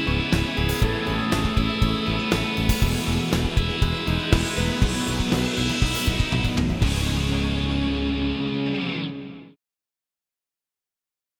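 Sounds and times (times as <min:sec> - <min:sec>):
solo backing track: 0:00.0 - 0:08.8.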